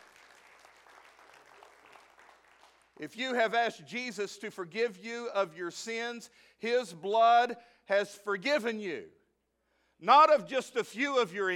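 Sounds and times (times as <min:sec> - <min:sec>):
audience applause: 0:00.0 - 0:03.0
speech: 0:03.0 - 0:09.2, 0:10.0 - 0:11.5.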